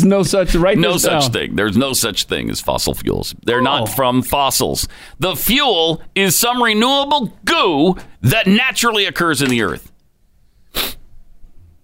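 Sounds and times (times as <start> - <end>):
speech: 0.0 - 9.9
snotty sniffle: 10.6 - 11.1.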